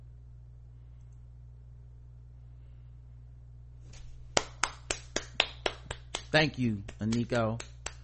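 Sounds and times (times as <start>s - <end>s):
low constant hum: 0.0s - 8.0s
hand clapping: 4.0s - 8.0s
speech: 6.3s - 7.7s.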